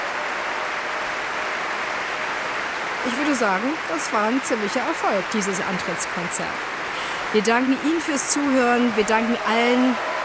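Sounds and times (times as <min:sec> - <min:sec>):
audience cheering and applause: 0:00.0 - 0:06.2, 0:08.4 - 0:10.2
speech: 0:03.0 - 0:10.1.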